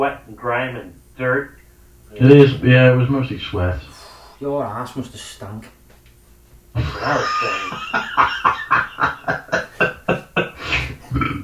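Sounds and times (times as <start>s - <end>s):
speech: 0.0s - 5.8s, 6.8s - 9.6s
laughter: 6.8s - 11.3s
person burping: 10.8s - 11.4s.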